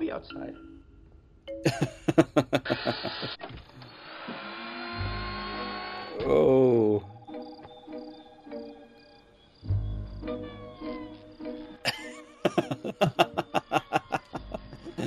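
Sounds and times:
speech: 0.1s - 0.7s, 1.5s - 3.6s, 6.2s - 6.7s
laughter: 1.7s - 3.4s, 11.8s - 15.0s
saw struggling to cut: 2.6s - 6.2s.

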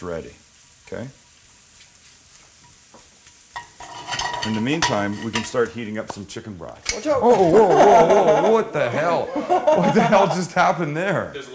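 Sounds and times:
speech: 0.0s - 1.2s, 4.4s - 11.5s
shiitake mushrooms frying in oil and butter: 0.0s - 8.9s
laughter: 7.0s - 10.9s.

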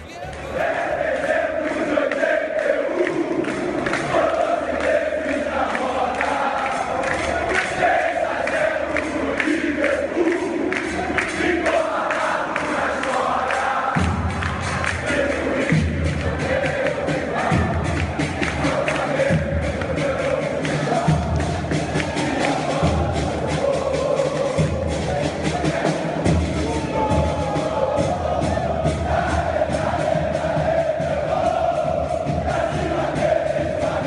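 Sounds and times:
Flamengo football supporters singing a stadium chant: 0.0s - 34.0s.

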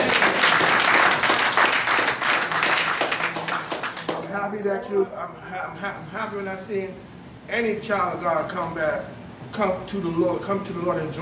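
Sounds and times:
audience applause, hand clapping: 0.0s - 4.4s
speech: 4.6s - 11.2s.

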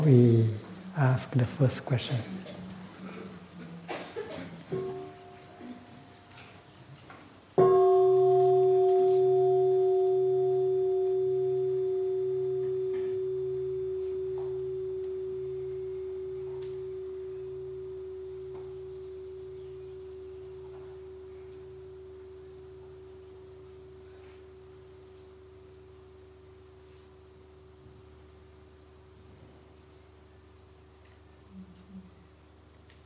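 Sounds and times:
speech: 0.0s - 2.6s
bell ringing: 7.6s - 22.4s.

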